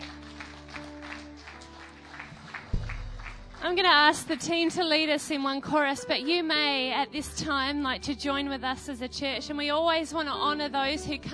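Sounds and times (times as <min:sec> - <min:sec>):
audience applause: 0:00.0 - 0:04.0
speech: 0:03.6 - 0:11.3.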